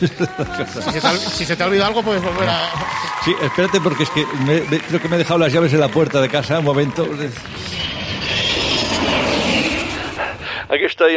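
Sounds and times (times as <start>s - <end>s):
laughter: 0.0s - 6.3s
speech: 0.0s - 7.7s, 10.7s - 11.1s
airplane flying: 4.0s - 10.8s.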